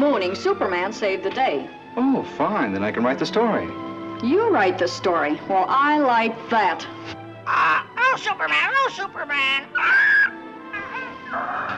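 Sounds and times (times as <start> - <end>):
speech: 0.1 - 10.2, 11.3 - 11.7
pet bird whistling: 9.6 - 11.3.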